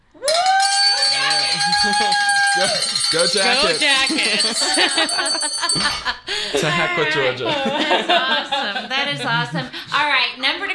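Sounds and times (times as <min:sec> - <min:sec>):
two handheld bells ringing: 0:00.2 - 0:06.1
laughter: 0:01.2 - 0:09.9
speech: 0:01.8 - 0:10.7.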